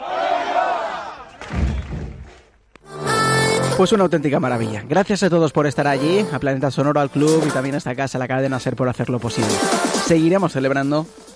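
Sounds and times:
crowd shouting a cheer together: 0.0s - 1.4s
speech: 3.8s - 11.3s.

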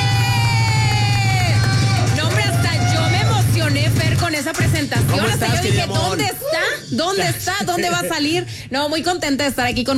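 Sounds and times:
audience applause welcoming a guest: 0.0s - 6.2s
speech: 4.5s - 9.9s.

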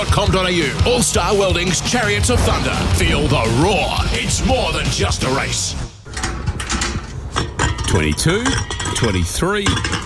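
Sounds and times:
speech: 0.0s - 5.9s, 7.9s - 10.0s
empty beer cans clinking and rattling: 6.6s - 10.0s.

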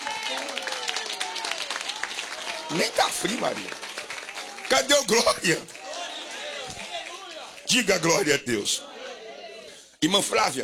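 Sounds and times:
church congregation clapping during worship: 0.0s - 8.4s
speech: 2.7s - 3.9s, 4.7s - 5.8s, 7.7s - 8.9s, 10.0s - 10.6s.

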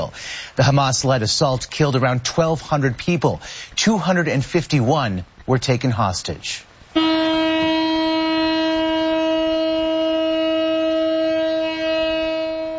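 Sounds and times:
speech: 0.0s - 7.2s
one-minute memorial siren: 7.0s - 12.7s.

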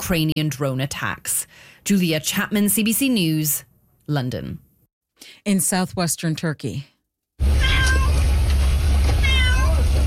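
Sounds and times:
speech: 0.1s - 4.6s, 5.2s - 6.9s
cat meowing: 7.6s - 8.2s, 9.2s - 9.9s.

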